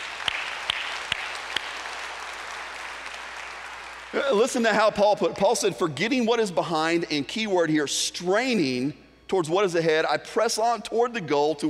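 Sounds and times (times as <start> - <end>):
audience clapping: 0.0 - 4.7
speech: 4.1 - 11.6.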